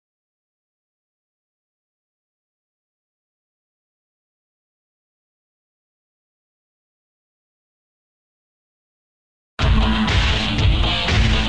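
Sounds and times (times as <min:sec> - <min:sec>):
song: 0:09.6 - 0:11.4.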